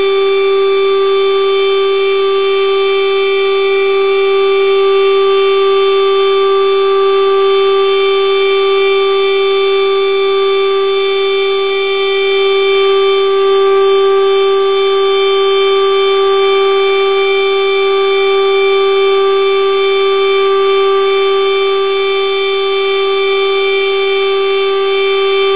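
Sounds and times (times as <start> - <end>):
civil defence warning siren: 0.0 - 25.5.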